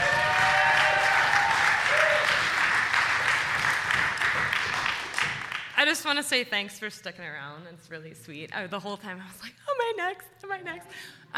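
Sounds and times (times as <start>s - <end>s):
audience applause: 0.0s - 5.7s
speech: 5.9s - 11.3s.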